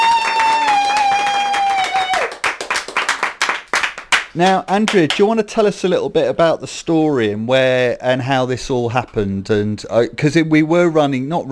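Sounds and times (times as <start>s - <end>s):
high-pitched whoop: 0.0s - 2.4s
audience clapping: 0.0s - 5.3s
speech: 4.4s - 11.5s.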